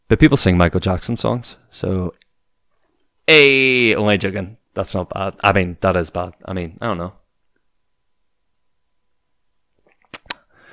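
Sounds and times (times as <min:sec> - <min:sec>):
speech: 0:00.1 - 0:02.2, 0:03.3 - 0:07.2
sipping from a glass of water: 0:09.8 - 0:10.5.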